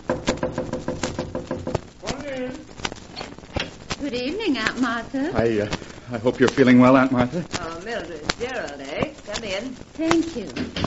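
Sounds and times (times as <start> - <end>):
knocking on a door: 0.0 - 1.9
speech: 4.0 - 10.8.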